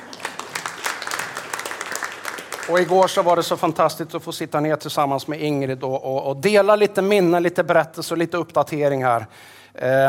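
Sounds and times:
audience applause: 0.0s - 3.7s
speech: 2.7s - 10.0s.

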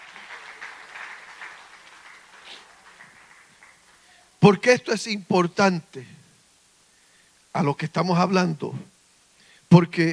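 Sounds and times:
audience applauding: 0.0s - 4.2s
speech: 4.4s - 6.2s, 7.6s - 8.9s, 9.7s - 10.1s.

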